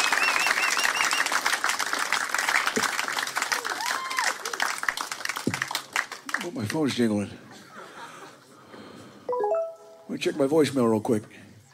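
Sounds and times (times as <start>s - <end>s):
audience whistles and cheers: 0.0s - 1.5s, 3.5s - 4.4s
audience applause: 0.0s - 7.0s
speech: 6.6s - 7.5s, 10.2s - 11.4s.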